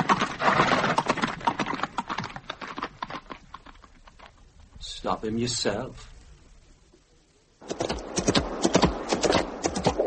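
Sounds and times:
hooves of a horse ridden bareback clip-clopping: 0:00.0 - 0:04.8, 0:07.6 - 0:10.0
speech: 0:05.0 - 0:06.1.

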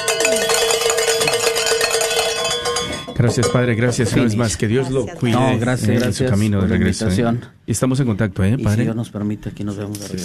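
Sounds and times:
hand bell rung in celebration: 0:00.0 - 0:03.8
speech: 0:03.2 - 0:10.2.

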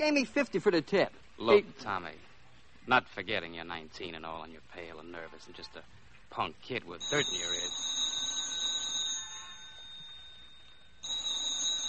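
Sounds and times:
speech: 0:00.0 - 0:02.3, 0:02.9 - 0:07.9
telephone ringing: 0:07.0 - 0:11.8.

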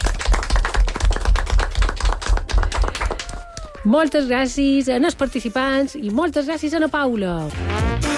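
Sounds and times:
applause: 0:00.0 - 0:03.8
speech: 0:03.8 - 0:08.0.

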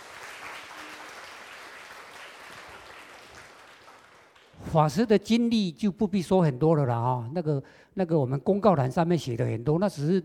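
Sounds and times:
audience applause welcoming a speaker: 0:00.0 - 0:04.6
speech: 0:04.7 - 0:10.2.

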